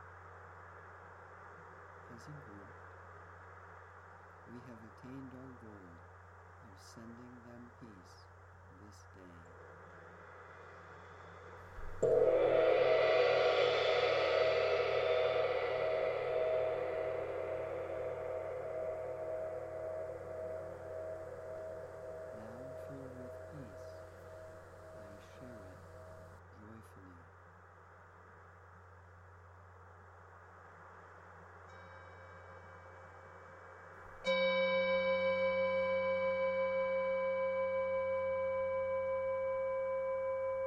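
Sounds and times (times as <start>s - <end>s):
synth: 11.8s - 26.3s
bells: 11.8s - 26.4s, 31.6s - 40.6s
gong: 11.8s - 26.4s, 31.7s - 40.6s.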